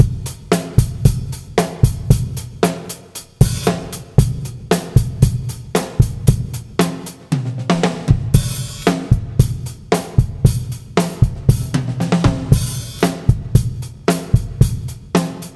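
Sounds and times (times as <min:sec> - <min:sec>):
drum: 0:00.0 - 0:15.5.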